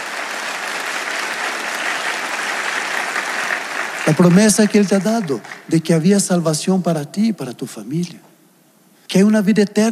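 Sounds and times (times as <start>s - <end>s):
audience applauding loudly: 0.0s - 5.9s
speech: 4.1s - 8.3s, 9.1s - 9.9s.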